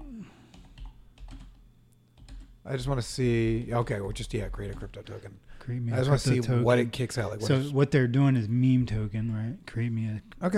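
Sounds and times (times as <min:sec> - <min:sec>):
computer keyboard typing a prompt: 0:00.5 - 0:02.6, 0:04.6 - 0:05.2
speech: 0:02.7 - 0:10.5.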